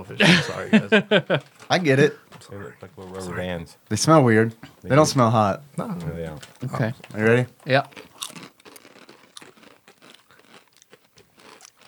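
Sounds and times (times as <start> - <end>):
laughter: 0.0 - 1.6
speech: 0.0 - 8.1
Japanese jack-o'-lantern rings snack crunching as they are chewed: 7.8 - 11.8.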